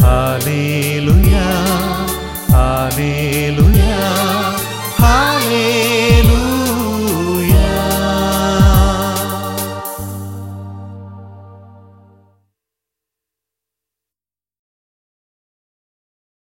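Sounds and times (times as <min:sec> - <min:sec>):
choral song: 0:00.0 - 0:12.2.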